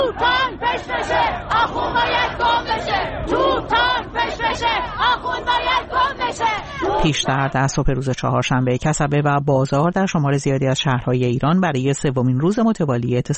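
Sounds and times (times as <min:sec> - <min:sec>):
protest crowd chanting anti-government slogans: 0:00.0 - 0:08.2
speech: 0:07.0 - 0:13.3.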